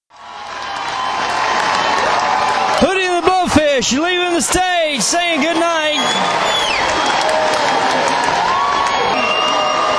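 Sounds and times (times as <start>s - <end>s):
large concert crowd roaring and cheering: 0.1s - 9.9s
shouts: 0.4s - 9.9s
speech: 3.8s - 8.3s
whistles: 6.0s - 7.3s, 8.8s - 9.9s.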